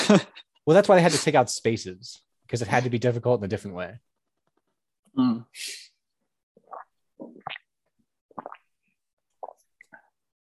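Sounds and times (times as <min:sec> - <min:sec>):
speech: 0:00.1 - 0:04.1, 0:05.1 - 0:05.9
person sipping drinking water: 0:06.6 - 0:07.7, 0:08.3 - 0:10.2.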